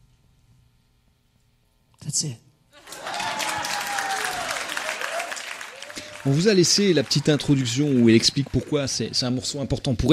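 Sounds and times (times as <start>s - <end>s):
speech: 2.1s - 2.5s, 6.2s - 10.1s
live concert audience applause: 2.8s - 9.6s.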